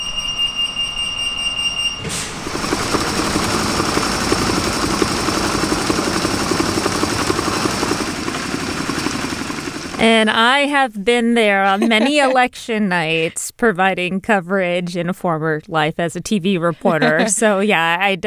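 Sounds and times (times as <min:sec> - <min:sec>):
steady electronic alarm tone: 0:00.0 - 0:02.2
mail-in ballot sorting machine running: 0:02.4 - 0:10.0
speech: 0:10.0 - 0:18.2
laughter: 0:11.5 - 0:13.4, 0:16.6 - 0:17.8.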